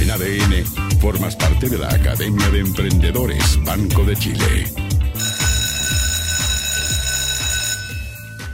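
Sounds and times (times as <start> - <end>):
speech: 0.2 - 4.9
school bell ringing for class: 5.2 - 8.5.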